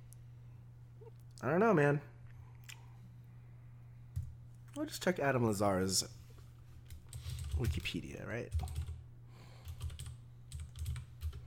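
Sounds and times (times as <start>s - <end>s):
speech: 1.0s - 2.1s, 4.8s - 6.2s, 7.6s - 8.8s
typing on a computer keyboard to search Wikipedia: 6.9s - 9.0s, 9.6s - 11.4s.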